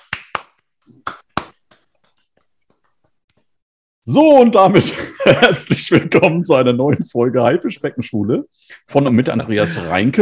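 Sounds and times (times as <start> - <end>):
hand clapping: 0.0 - 3.5
speech: 4.1 - 10.1.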